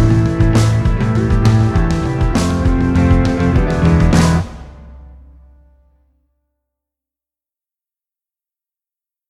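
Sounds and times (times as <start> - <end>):
drums: 0.0 - 6.0.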